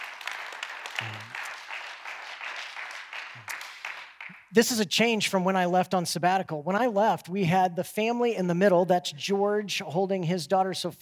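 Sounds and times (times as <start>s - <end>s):
audience clapping: 0.0s - 4.6s
speech: 4.5s - 10.9s.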